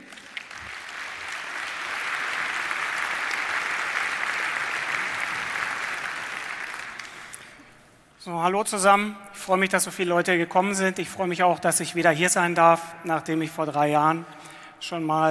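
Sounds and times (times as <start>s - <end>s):
audience applause: 0.0s - 7.7s
speech: 8.2s - 15.2s.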